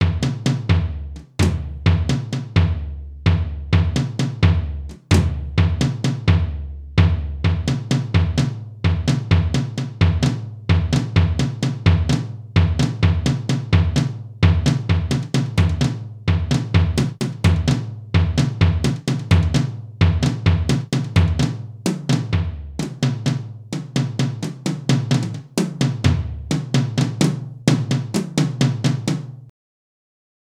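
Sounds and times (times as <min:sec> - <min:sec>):
mountain beat music: 0:00.0 - 0:29.5.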